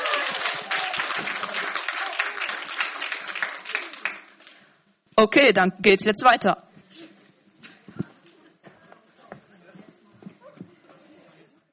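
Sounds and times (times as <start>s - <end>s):
crowd applauding: 0.0s - 4.7s
speech: 5.2s - 6.7s.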